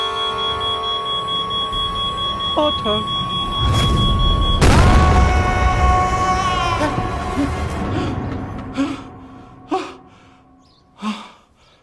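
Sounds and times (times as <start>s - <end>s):
long loud horn blast: 0.0s - 3.0s, 3.6s - 10.4s
low rumble: 1.8s - 10.6s
speech: 2.6s - 3.9s.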